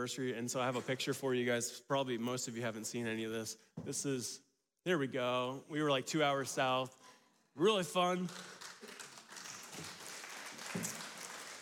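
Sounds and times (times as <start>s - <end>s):
speech: 0.0s - 9.0s
audience clapping: 8.0s - 11.6s.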